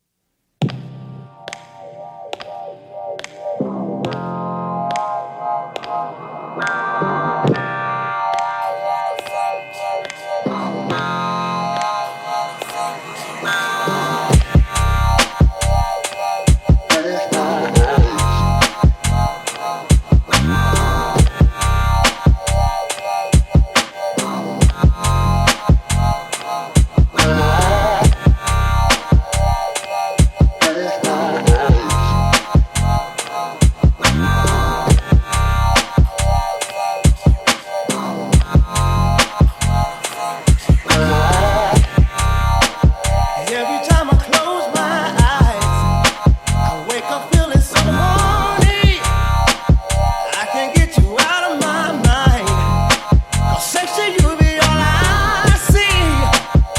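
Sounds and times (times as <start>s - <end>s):
lofi hip hop remix: 0.6s - 56.7s.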